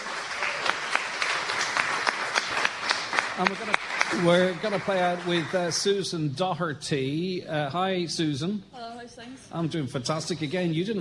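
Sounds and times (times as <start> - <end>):
audience round of applause: 0.0 - 6.0
speech: 3.4 - 11.0.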